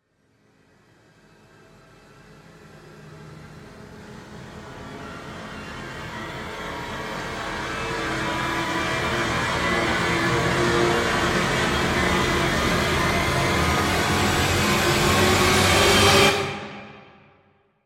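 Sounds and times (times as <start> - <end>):
trailer riser music: 6.4 - 17.4.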